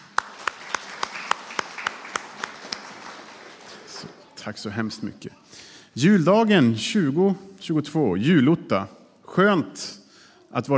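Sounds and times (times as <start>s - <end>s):
audience applause: 0.0s - 4.7s
speech: 4.4s - 5.4s, 6.0s - 10.7s.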